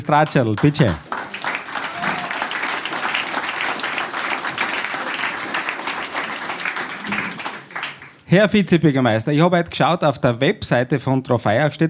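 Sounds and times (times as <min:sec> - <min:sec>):
speech: 0:00.0 - 0:01.1, 0:08.3 - 0:11.8
audience applause: 0:00.0 - 0:08.3.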